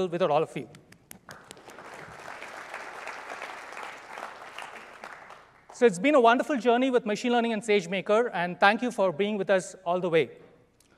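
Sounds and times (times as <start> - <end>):
speech: 0.0 - 0.8, 5.8 - 10.4
audience round of applause: 1.3 - 5.8.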